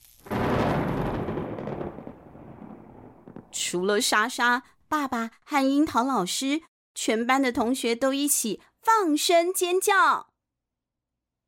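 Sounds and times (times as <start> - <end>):
loud thunderclap sound effect: 0.2 - 3.7
speech: 3.7 - 10.3.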